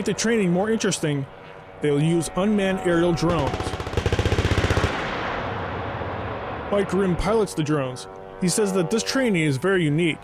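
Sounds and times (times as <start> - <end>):
speech: 0.0 - 3.7, 6.7 - 10.2
weapons firing during training: 3.4 - 5.4.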